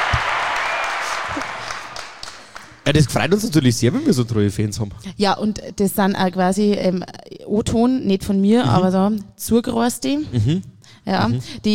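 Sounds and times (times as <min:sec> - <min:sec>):
audience applause: 0:00.0 - 0:03.2
speech: 0:02.9 - 0:11.7.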